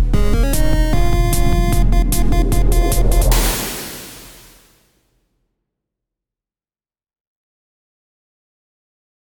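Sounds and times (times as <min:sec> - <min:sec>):
instrumental music: 0:00.1 - 0:04.6.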